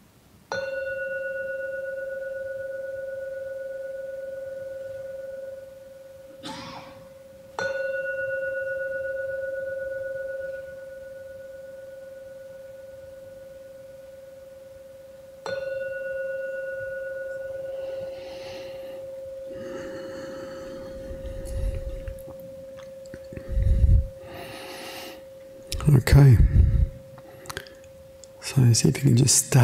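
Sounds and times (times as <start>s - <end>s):
meditation bell ringing: 0.5s - 6.3s, 7.0s - 29.6s
speech: 26.0s - 26.5s, 28.7s - 29.6s.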